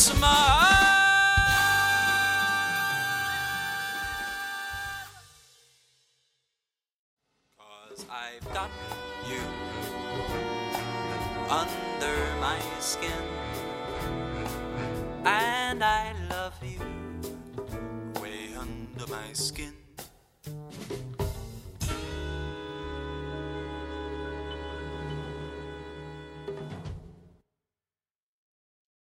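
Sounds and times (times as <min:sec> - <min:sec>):
jazz singer singing: 0:00.0 - 0:05.2, 0:07.6 - 0:17.4, 0:18.1 - 0:20.0, 0:21.8 - 0:26.5
backing track music: 0:00.0 - 0:05.3, 0:08.0 - 0:27.2.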